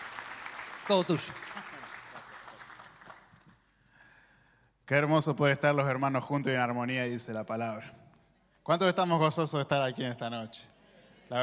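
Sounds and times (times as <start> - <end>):
audience applause: 0.0 - 3.6
speech: 0.9 - 1.5, 4.9 - 8.0, 8.7 - 10.7.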